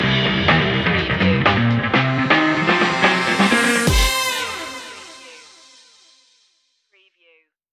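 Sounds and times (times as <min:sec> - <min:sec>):
retro quest stinger: 0:00.8 - 0:06.2.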